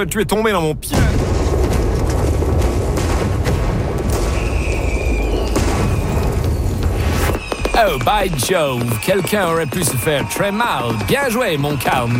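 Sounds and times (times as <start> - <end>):
speech: 0.0 - 1.4, 7.8 - 12.1
gunpowder barrels exploding: 0.9 - 9.2.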